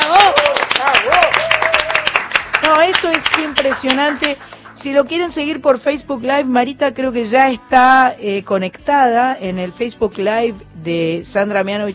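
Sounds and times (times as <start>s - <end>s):
audience applauding: 0.0s - 4.8s
speech: 3.7s - 11.9s.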